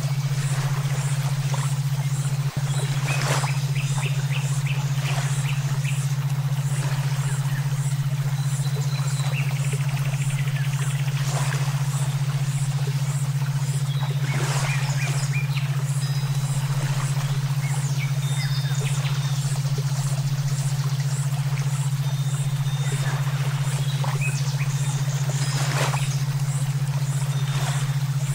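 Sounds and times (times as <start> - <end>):
several songbirds chirping and twittering: 0.0 - 28.3.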